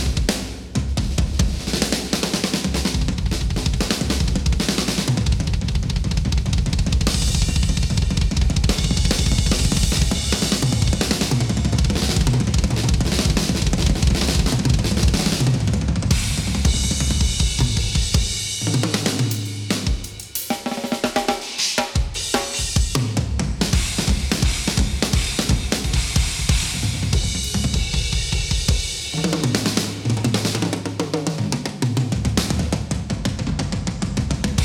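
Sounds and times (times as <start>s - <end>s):
drums: 0.0s - 34.6s.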